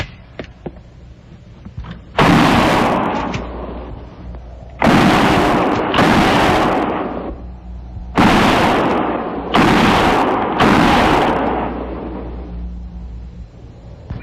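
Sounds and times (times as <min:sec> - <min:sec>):
rifle gunfire between the trees: 0:02.1 - 0:04.0, 0:04.8 - 0:07.4, 0:08.1 - 0:12.5.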